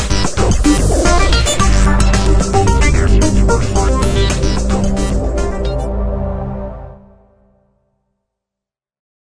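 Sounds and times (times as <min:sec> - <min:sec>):
techno cue: 0:00.0 - 0:07.3.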